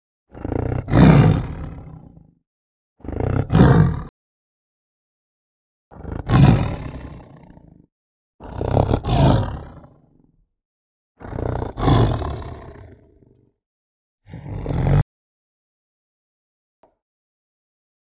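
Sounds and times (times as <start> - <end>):
tiger growling: 0.3 - 2.3, 3.0 - 4.1, 5.9 - 10.2, 11.2 - 13.4, 14.3 - 15.0.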